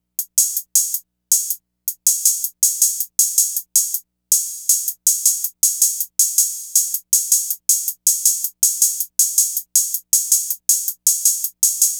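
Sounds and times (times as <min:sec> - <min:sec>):
hi-hat: 0:00.2 - 0:11.9.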